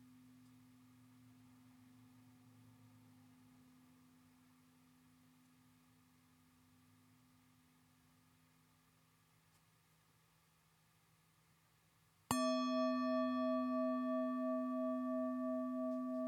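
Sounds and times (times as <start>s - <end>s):
singing bowl: 12.3s - 16.2s.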